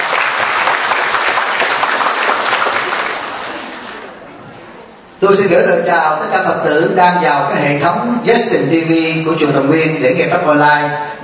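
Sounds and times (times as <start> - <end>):
audience applause: 0.0 - 4.3
speech: 5.4 - 11.2.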